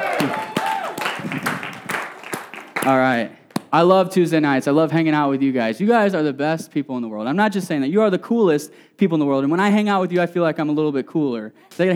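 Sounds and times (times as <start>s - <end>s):
audience applause: 0.0s - 3.7s
speech: 2.8s - 11.9s.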